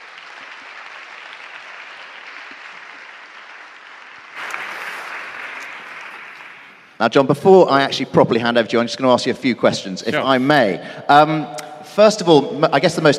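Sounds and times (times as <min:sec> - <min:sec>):
audience applause welcoming a speaker: 0:00.0 - 0:07.0
speech: 0:07.0 - 0:13.1.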